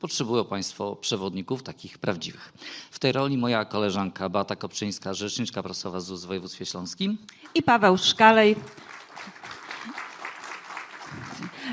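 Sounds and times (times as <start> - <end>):
speech: 0.0 - 9.6
applause at a conference: 7.3 - 11.7.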